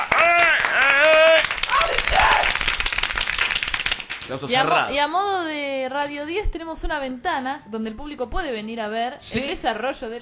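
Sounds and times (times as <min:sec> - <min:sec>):
people clapping for the band on a radio show: 0:00.0 - 0:04.8
speech: 0:04.3 - 0:10.2.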